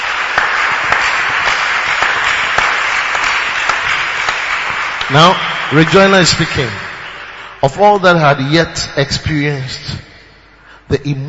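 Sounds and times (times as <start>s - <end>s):
crowd clapping: 0.0s - 8.0s
speech: 5.1s - 6.8s, 7.6s - 10.1s, 10.9s - 11.2s.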